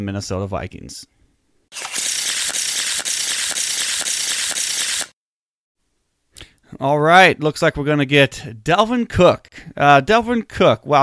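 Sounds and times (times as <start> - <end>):
speech: 0.0 - 1.1, 6.8 - 11.0
deck of cards being shuffled: 1.8 - 5.1.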